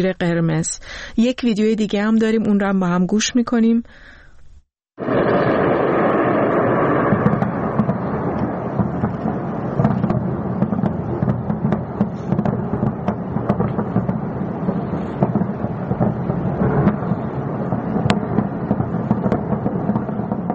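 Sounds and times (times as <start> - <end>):
speech: 0.0 - 4.2, 5.0 - 5.6
anti-aircraft defense fire in the sky over Tehran: 5.0 - 20.5.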